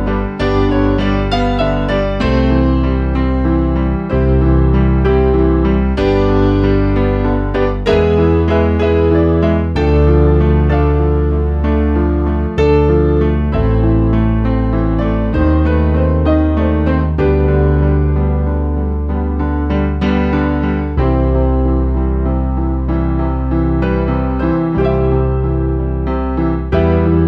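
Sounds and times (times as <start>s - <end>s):
piano piece: 0.0s - 27.2s.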